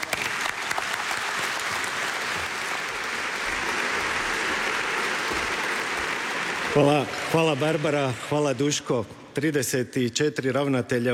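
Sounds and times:
audience applause for the director general of Croatian Radiotelevision: 0:00.0 - 0:08.9
speech: 0:06.8 - 0:11.1.

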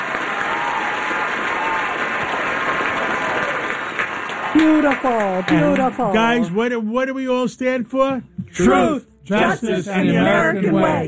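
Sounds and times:
studio audience applause: 0:00.0 - 0:06.7
speech: 0:04.5 - 0:11.0.

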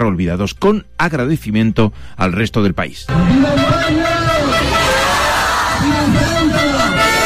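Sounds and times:
speech: 0:00.0 - 0:04.1
large crowd of protesters shouting chants in unison: 0:03.1 - 0:07.2.

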